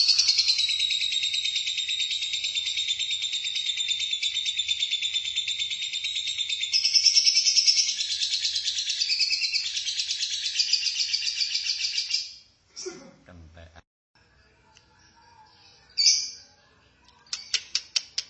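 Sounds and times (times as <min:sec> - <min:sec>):
lovebird chattering: 0:00.0 - 0:12.3.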